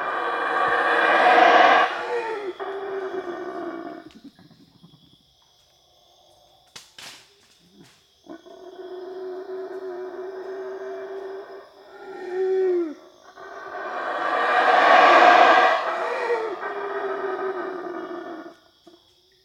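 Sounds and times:
black howler monkey making harsh guttural barks: 0.0 - 4.1, 8.3 - 18.5.

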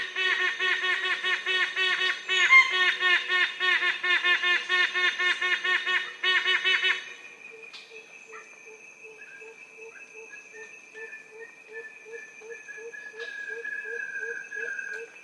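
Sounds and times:
yellow-casqued hornbill honking calls: 0.0 - 7.2.

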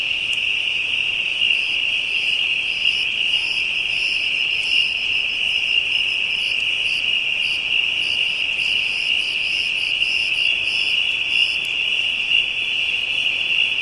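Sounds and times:
African insects calling in a dense high-pitched drone: 0.0 - 13.8.

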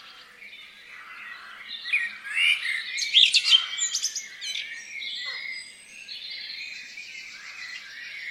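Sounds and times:
crows in farmland: 0.0 - 2.8, 3.4 - 4.5, 5.2 - 5.6
blackbirds in farmland: 0.0 - 8.2.

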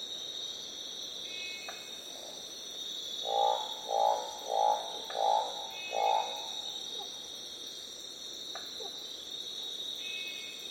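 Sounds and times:
Northern barred frog croaking: 3.2 - 6.6.

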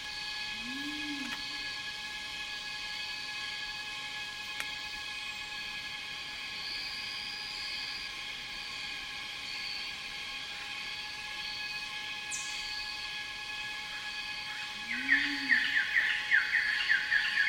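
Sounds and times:
cicadas in rainforest: 0.0 - 17.4
birds in rainforest: 14.4 - 17.4.

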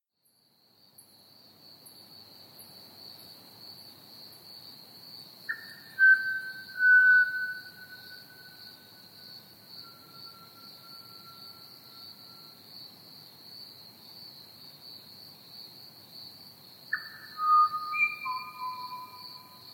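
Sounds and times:
Pied Butcherbird whistling: 5.5 - 8.2, 17.0 - 19.5.

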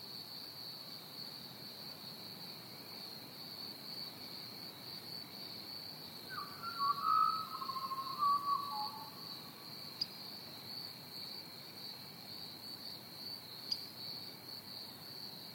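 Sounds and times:
Pied Butcherbird song: 6.3 - 10.1.

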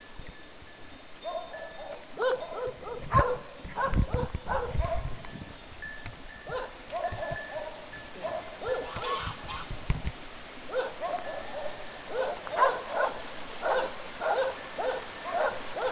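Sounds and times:
small village dogs barking: 1.2 - 5.2, 6.4 - 9.8, 10.7 - 15.9.

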